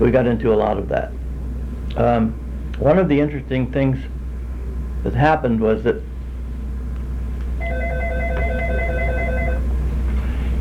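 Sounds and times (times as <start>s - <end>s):
speech: 0.0s - 1.2s, 2.0s - 4.2s, 5.0s - 6.1s
low steady hum: 0.0s - 10.5s
telephone ringing with trilling electronic ring: 7.6s - 9.8s.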